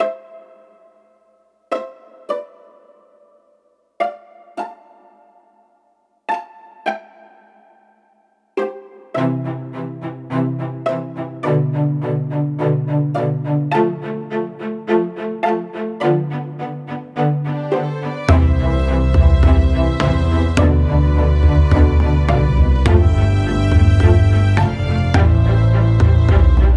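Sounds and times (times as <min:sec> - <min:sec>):
medieval violin based song: 0:01.7 - 0:03.0, 0:04.0 - 0:05.6, 0:08.6 - 0:26.7.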